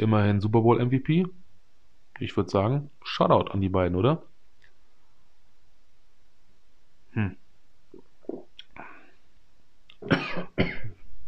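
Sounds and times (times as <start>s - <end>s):
speech: 0.0s - 1.4s, 2.2s - 4.3s, 7.2s - 7.4s
person coughing after choking on coffee: 10.0s - 11.0s.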